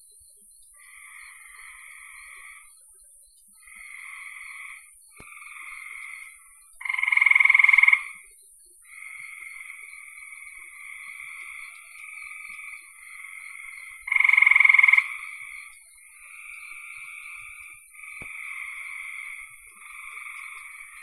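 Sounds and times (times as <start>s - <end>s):
frog buzzing trill: 3.6s - 8.2s, 8.9s - 21.0s.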